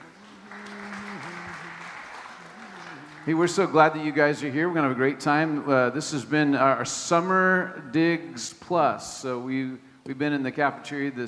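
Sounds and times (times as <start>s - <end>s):
audience applause: 0.0s - 4.8s
speech: 3.2s - 11.2s.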